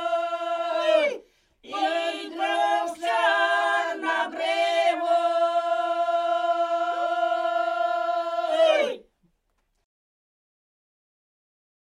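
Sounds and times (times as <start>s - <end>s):
polyphonic singing from Polesie in Ukraine: 0.0s - 9.0s.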